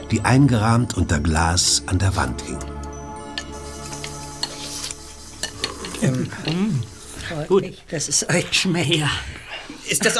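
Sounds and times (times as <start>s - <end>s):
speech: 0.1s - 2.7s, 6.0s - 10.1s
spoon and dishes while eating soup: 2.6s - 7.0s.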